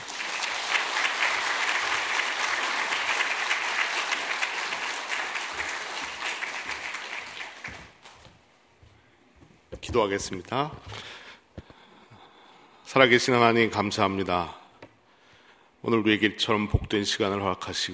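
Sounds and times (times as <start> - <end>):
audience applause: 0.0 - 8.2
speech: 9.9 - 11.1, 12.9 - 14.6, 15.9 - 17.9.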